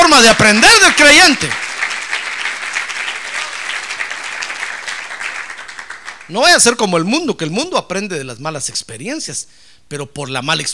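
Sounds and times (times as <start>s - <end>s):
audience applause: 0.0s - 6.4s
speech: 0.2s - 1.6s, 6.3s - 10.7s.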